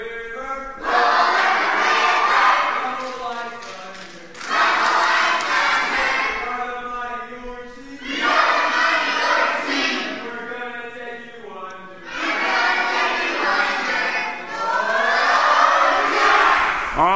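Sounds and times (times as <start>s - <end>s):
team crowd cheering and chanting rhythmically: 0.7s - 3.6s, 4.3s - 6.9s, 8.0s - 10.2s, 12.0s - 17.1s.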